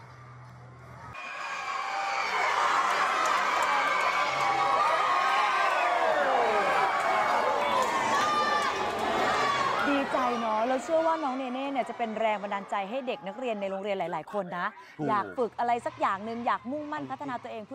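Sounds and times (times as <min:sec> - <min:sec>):
school students and teachers cheering loudly: 0:01.2 - 0:13.8
speech: 0:11.1 - 0:17.7.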